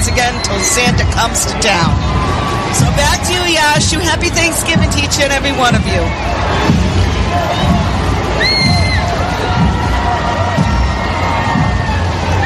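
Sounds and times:
large crowd cheering at Thanksgiving Day parade: 0:00.0 - 0:12.4
speech: 0:00.2 - 0:07.8
shrill whoops and whistles from parade crowd: 0:07.5 - 0:09.5.

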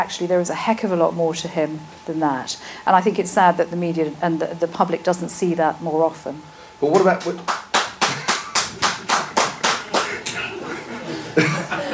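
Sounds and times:
speech: 0:00.0 - 0:07.6
two UKIP supporters clapping loudly: 0:07.0 - 0:10.4
laughter: 0:08.0 - 0:11.9.

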